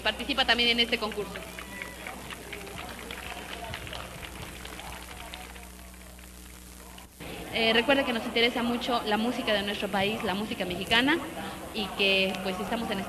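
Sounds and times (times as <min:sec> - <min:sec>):
speech: 0:00.0 - 0:01.6, 0:07.6 - 0:13.0
audience applause: 0:00.9 - 0:06.2.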